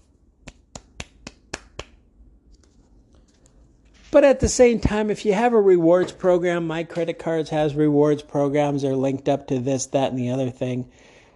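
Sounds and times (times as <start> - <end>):
golf clap: 0.5 - 2.0
speech: 4.1 - 11.1.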